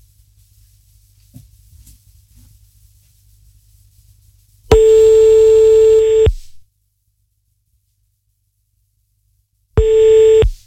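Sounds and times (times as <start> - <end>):
faint low hum on the line: 0.0 - 10.6
telephone line tone after redialing a number: 4.7 - 6.4, 9.8 - 10.5.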